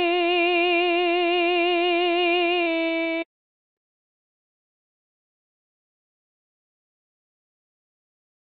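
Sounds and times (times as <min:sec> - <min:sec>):
contralto singing: 0:00.0 - 0:03.2.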